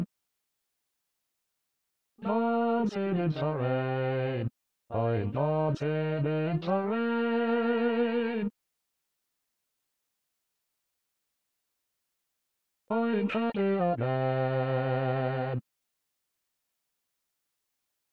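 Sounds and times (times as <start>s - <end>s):
bass voice of SATB choir singing: 2.2s - 8.4s, 12.9s - 15.6s.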